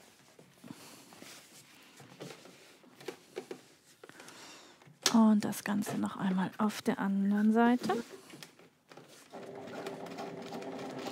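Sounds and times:
speech: 5.1s - 8.2s
sewing machine stitching a seam: 9.2s - 11.0s.

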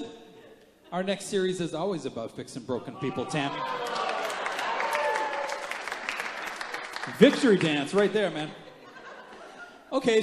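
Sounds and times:
speech: 0.9s - 4.0s, 7.1s - 8.6s, 9.9s - 10.2s
audience applause: 3.5s - 8.2s
laughter: 8.3s - 9.9s.

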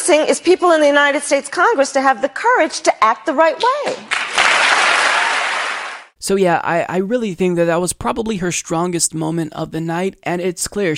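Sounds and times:
speech: 0.1s - 4.3s, 6.2s - 10.9s
crowd applause: 4.1s - 6.1s.

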